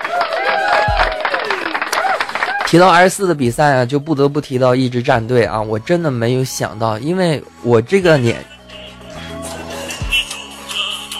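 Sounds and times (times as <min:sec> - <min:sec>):
cheering sound effect: 0:00.0 - 0:02.9
speech: 0:02.7 - 0:08.5.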